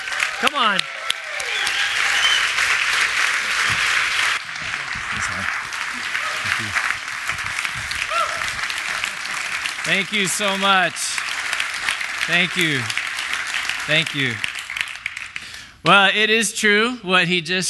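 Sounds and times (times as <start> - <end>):
audience applauding to welcome Pastor Dave Barr to the stage: 0.0 - 15.7
speech: 0.4 - 1.0, 9.9 - 11.2, 12.3 - 13.0, 13.8 - 14.5, 15.9 - 17.6.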